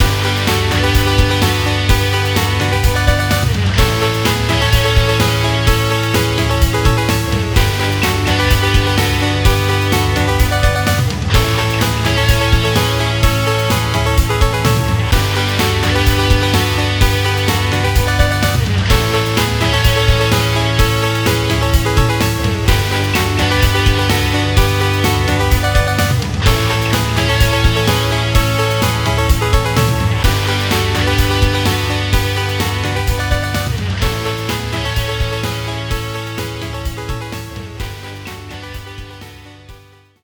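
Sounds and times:
fanfare: 0.0 - 40.1.

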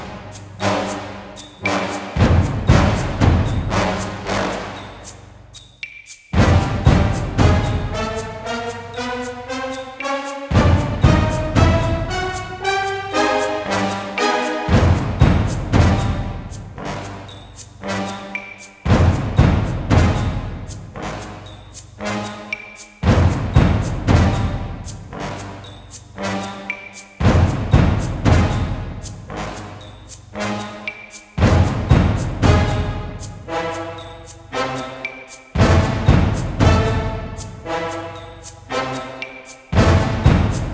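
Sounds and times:
ice caves fight game music: 0.0 - 4.8, 6.4 - 17.0, 17.8 - 21.4, 23.0 - 25.6, 26.3 - 29.6, 30.4 - 34.0, 35.6 - 38.1, 39.8 - 40.7.

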